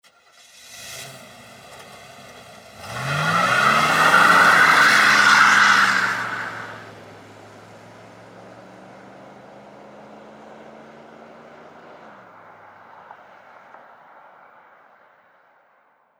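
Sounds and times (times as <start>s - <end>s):
Ford police car starting and leaving: 0.0s - 14.3s.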